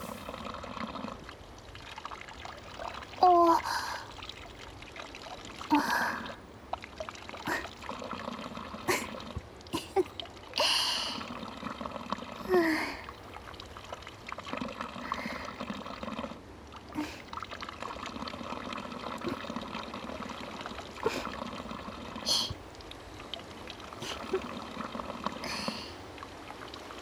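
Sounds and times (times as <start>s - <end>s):
person drinking spring water: 0.0s - 1.2s, 5.7s - 6.5s, 7.4s - 13.4s, 14.5s - 16.4s, 17.0s - 22.7s, 23.9s - 26.1s
spring water flowing: 0.0s - 27.0s.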